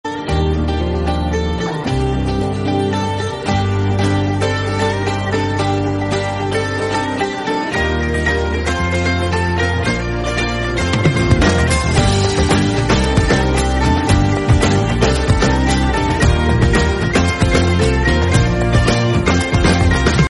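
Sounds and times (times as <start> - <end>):
madari guitar playing: 0.0 - 20.2.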